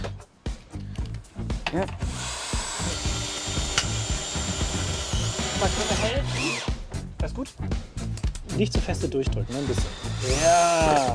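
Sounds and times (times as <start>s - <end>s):
speech: 1.7s - 2.3s, 5.6s - 7.9s, 8.5s - 11.1s
power screwdriver driving a screw into a wooden board: 2.0s - 6.8s, 9.4s - 11.1s.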